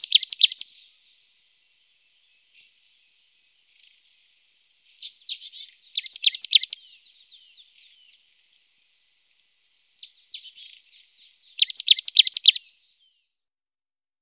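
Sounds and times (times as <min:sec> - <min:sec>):
marsh tit singing: 0:00.0 - 0:01.0, 0:03.6 - 0:09.0, 0:09.6 - 0:13.2.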